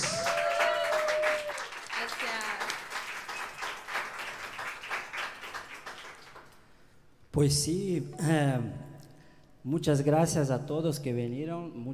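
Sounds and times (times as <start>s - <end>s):
loud audience applause: 0.0s - 6.6s
speech: 7.4s - 8.9s, 9.6s - 11.9s.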